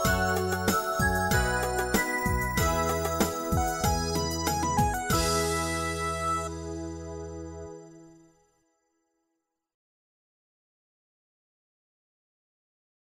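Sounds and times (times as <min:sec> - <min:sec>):
music beat: 0:00.0 - 0:07.1.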